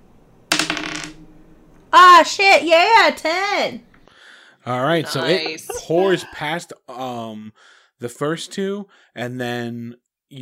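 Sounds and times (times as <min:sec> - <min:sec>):
ten-sided die rolling on a tabletop: 0:00.5 - 0:01.2
speech: 0:01.9 - 0:03.9, 0:04.6 - 0:10.4
laughter: 0:04.9 - 0:06.6.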